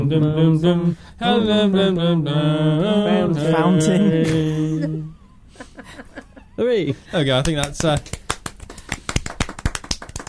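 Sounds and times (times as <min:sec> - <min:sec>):
speech: 0:00.1 - 0:05.0, 0:05.7 - 0:08.2
hand clapping: 0:07.4 - 0:10.2.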